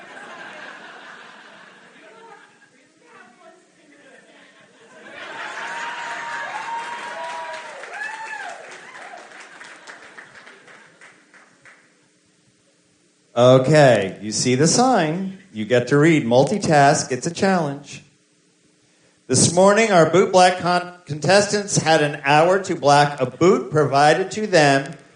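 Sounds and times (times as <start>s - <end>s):
laughter: 0.0s - 2.8s, 3.8s - 6.4s
small audience clapping at a bootblack contest event: 5.5s - 12.0s
speech: 13.4s - 18.0s, 19.3s - 25.0s.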